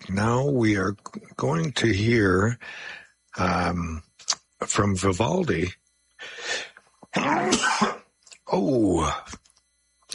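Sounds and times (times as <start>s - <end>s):
speech: 0.1s - 9.4s
person sneezing: 6.4s - 8.1s.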